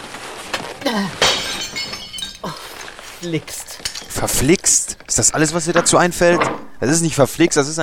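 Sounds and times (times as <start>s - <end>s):
vase falling from a wobbly shelf and shattering: 0.5s - 6.9s
speech: 0.9s - 1.2s, 3.2s - 7.8s
glass shards of a vase tinkling: 1.0s - 6.4s.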